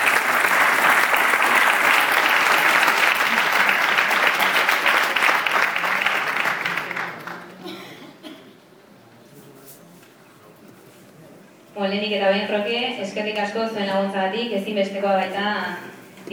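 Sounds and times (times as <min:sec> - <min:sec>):
audience applause: 0:00.0 - 0:07.6
speech: 0:11.9 - 0:16.3.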